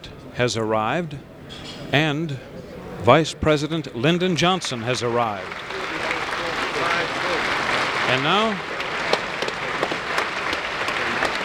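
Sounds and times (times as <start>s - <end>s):
laughter: 0.0s - 11.4s
members of Congress standing and applauding: 0.0s - 11.4s
speech: 0.4s - 5.7s, 8.1s - 8.7s.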